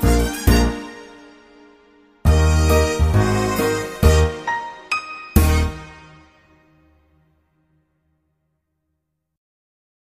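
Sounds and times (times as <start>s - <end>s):
instrumental music: 0.0s - 7.6s.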